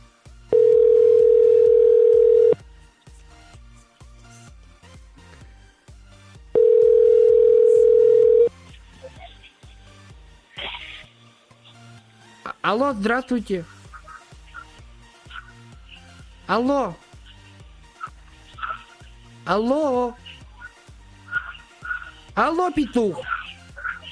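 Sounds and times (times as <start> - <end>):
telephone ringback tone after a number is dialed: 0.5 - 2.6, 6.6 - 8.5
speech: 12.7 - 13.7, 16.5 - 17.0, 19.5 - 20.3, 22.4 - 23.3.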